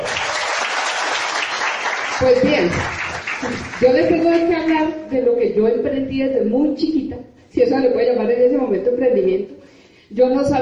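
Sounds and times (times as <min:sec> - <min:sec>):
audience applause: 0:00.0 - 0:04.7
speech: 0:02.2 - 0:09.5, 0:10.1 - 0:10.6.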